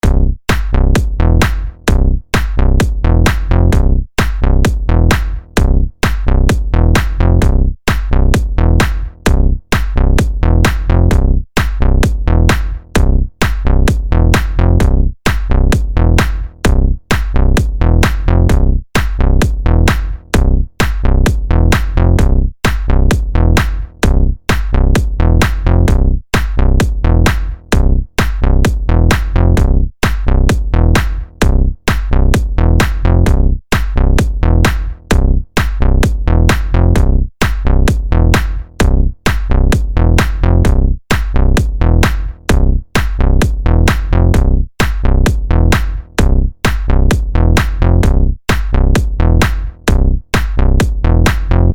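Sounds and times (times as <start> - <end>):
house bass: 0.0 - 51.7
mega funk house beat: 0.0 - 51.7.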